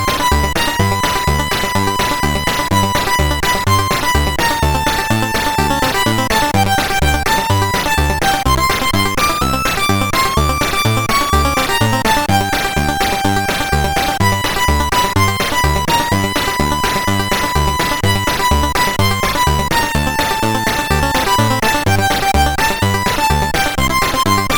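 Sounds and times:
CSG8580R5 synthesizer sample: 0:00.1 - 0:24.4.

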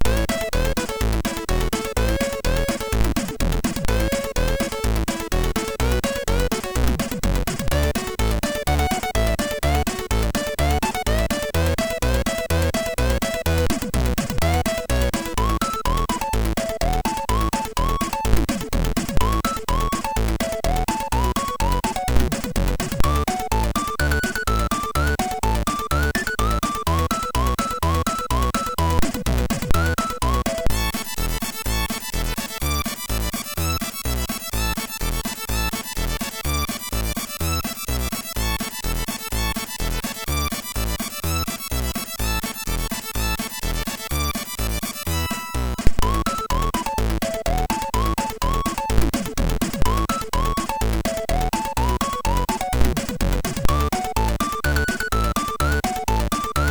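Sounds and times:
country music on MOS6581R3 chip: 0:00.0 - 0:56.6.

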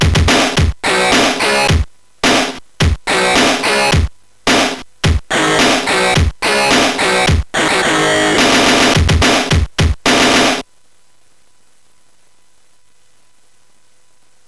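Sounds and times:
heavy beat on MOS6581R4: 0:00.0 - 0:10.6.

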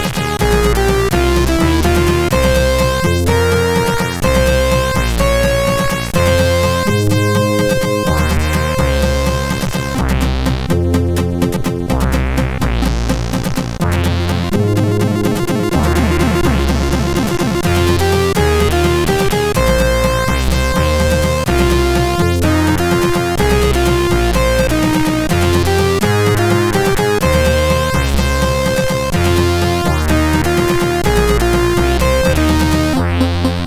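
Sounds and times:
chiptune music on SID CSG8580R5 chip: 0:00.0 - 0:33.6.

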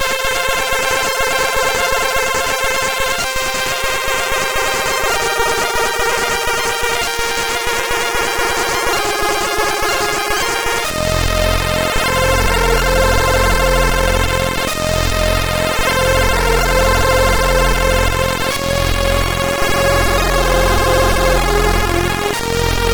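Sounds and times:
trance music on a MOS6581R3 sound chip: 0:00.0 - 0:22.9.

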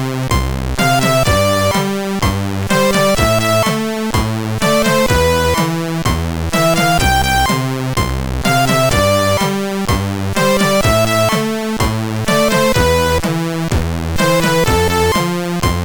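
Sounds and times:
SID CSG8580R5 synthesizer chip tune: 0:00.3 - 0:02.0, 0:02.7 - 0:03.8, 0:04.6 - 0:15.8.

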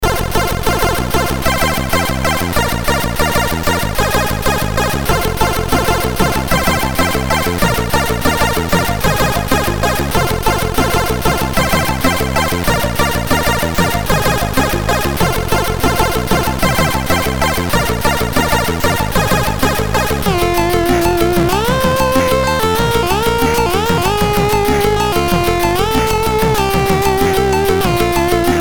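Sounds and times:
MOS6581R4 SID chip music: 0:00.0 - 0:28.6.

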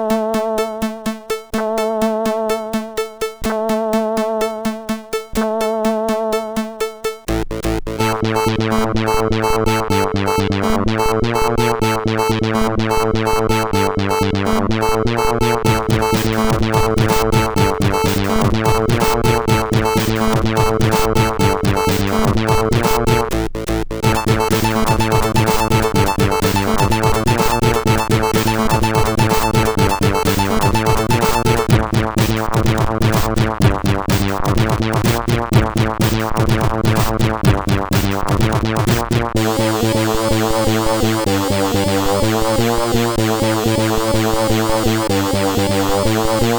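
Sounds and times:
CSG8580R5 synth sound: 0:00.1 - 0:23.3, 0:24.0 - 0:46.4.

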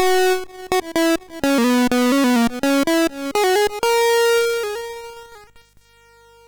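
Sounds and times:
arcade chiptune sounds on a MOS 6581R2 SID chip: 0:00.1 - 0:04.1.

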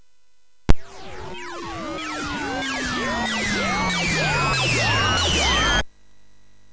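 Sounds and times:
MOS6581R3 chip music demo: 0:00.7 - 0:05.8.

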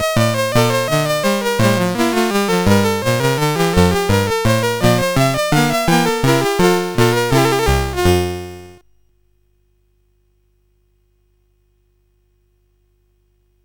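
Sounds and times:
fugue on CSG8580R5 sound chip: 0:00.0 - 0:08.8.

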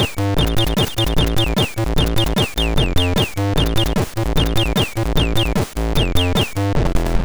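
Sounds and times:
MOS6581R3 SID chip music: 0:00.0 - 0:07.1.

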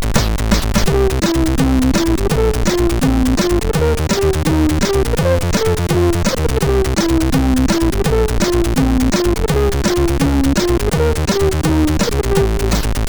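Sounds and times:
SID chip MOS6581R4 music: 0:00.2 - 0:13.0.

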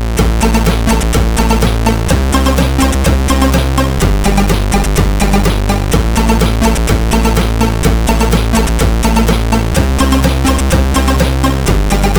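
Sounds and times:
intro on CSG8580R5 sound chip: 0:00.2 - 0:12.1.

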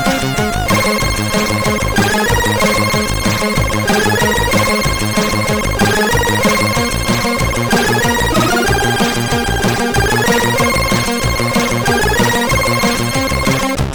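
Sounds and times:
MOS 8580 SID chip game music: 0:00.1 - 0:13.8.

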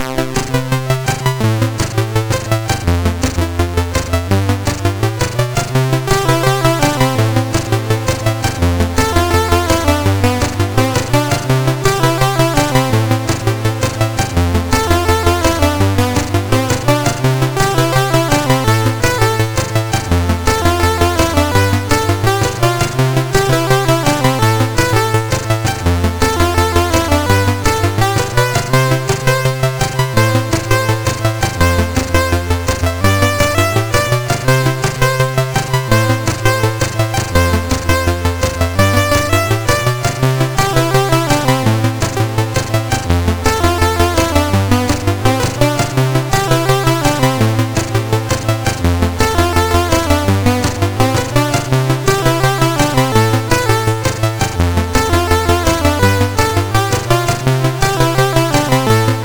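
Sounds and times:
chiptune music on MOS6581R4 chip: 0:00.0 - 0:59.2.

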